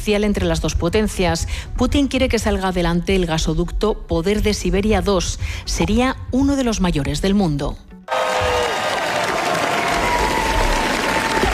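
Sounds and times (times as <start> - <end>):
speech: 0.0 - 7.9
audience applause at the Festival de Cannes: 8.1 - 11.5.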